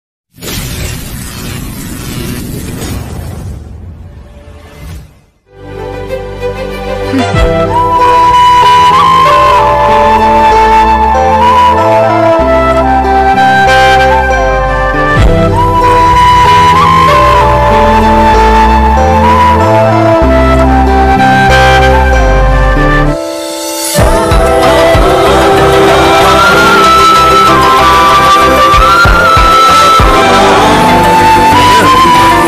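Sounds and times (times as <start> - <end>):
background music ringtone: 6.9 - 32.4.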